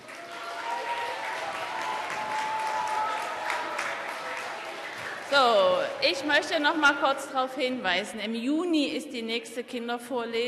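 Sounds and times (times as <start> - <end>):
audience applause: 0.0 - 6.7
speech: 5.3 - 10.4.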